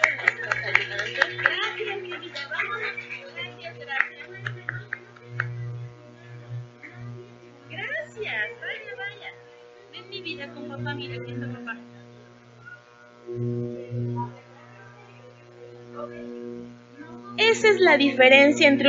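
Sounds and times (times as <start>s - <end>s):
audience clapping: 0.0s - 5.7s
laughter: 0.0s - 5.7s, 10.2s - 11.9s, 14.2s - 15.4s
low electrical buzz: 0.0s - 18.8s
speech: 17.6s - 18.8s.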